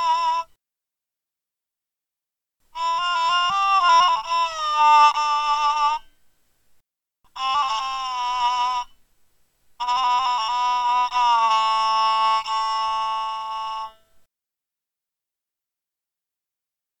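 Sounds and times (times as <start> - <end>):
one string phonofiddle: 2.7 - 6.2, 7.3 - 9.0, 9.8 - 14.2.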